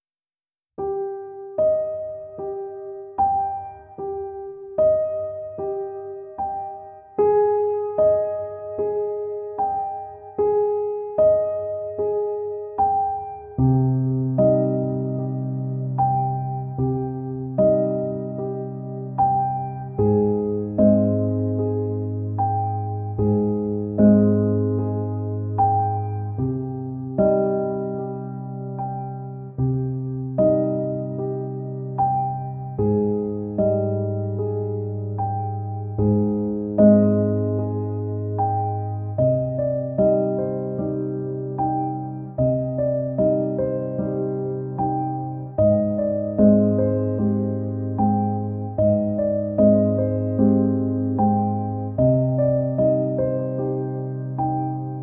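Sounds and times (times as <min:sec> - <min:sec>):
piano music: 0:00.8 - 0:55.0.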